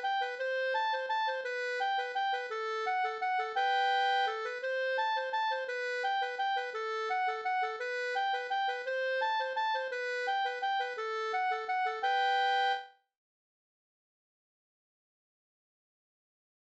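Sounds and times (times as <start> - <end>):
waltz music: 0.0 - 12.9.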